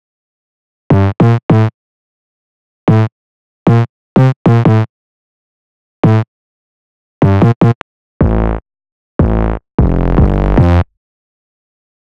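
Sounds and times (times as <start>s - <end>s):
silly isolated bass line: 0.9s - 1.7s, 2.9s - 3.1s, 3.7s - 4.9s, 6.0s - 6.2s, 7.2s - 8.6s, 9.2s - 10.9s.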